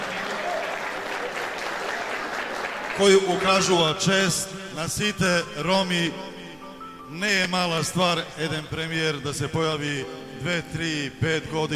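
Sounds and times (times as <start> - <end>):
crowd applause for a prime minister: 0.0 - 4.0
speech: 3.0 - 6.4, 7.1 - 11.7.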